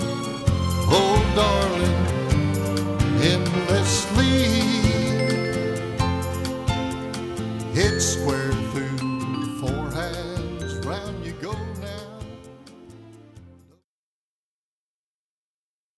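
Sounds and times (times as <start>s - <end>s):
vocals: 0.8s - 12.8s.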